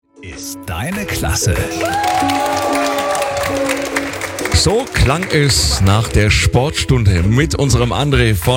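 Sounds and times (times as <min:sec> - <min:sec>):
speech: 0:00.3 - 0:02.6, 0:04.6 - 0:08.5
school class applauding: 0:00.9 - 0:06.4.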